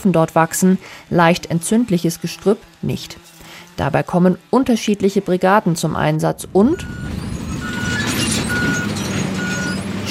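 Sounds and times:
speech: 0.0s - 7.3s
large tractor rumbling: 0.0s - 10.0s
high reversing alarm beeping: 6.7s - 10.0s.

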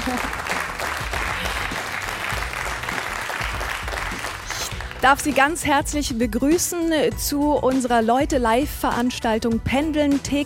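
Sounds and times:
studio audience applause at a live event on commuting: 0.0s - 5.3s
speech: 0.1s - 0.4s, 5.0s - 10.4s.

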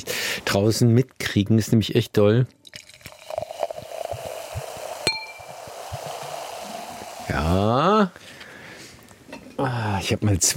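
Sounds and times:
speech: 0.0s - 2.6s, 7.5s - 8.2s, 10.1s - 10.5s
champagne being poured into a glass: 2.5s - 7.4s
glass clinking: 5.0s - 5.7s.

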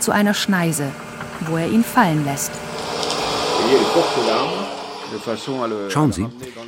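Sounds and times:
speech: 0.0s - 6.6s
forestry harvester sawing and lifting a large tree: 0.7s - 6.0s.

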